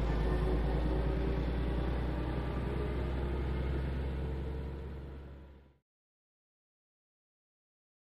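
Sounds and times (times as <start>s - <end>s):
coach bus starting and pulling away: 0.0s - 5.8s.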